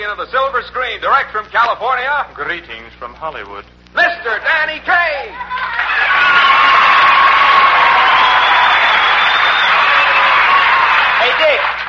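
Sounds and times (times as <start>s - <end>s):
speech: 0.0s - 6.5s
audience applause and cheering: 5.3s - 11.8s.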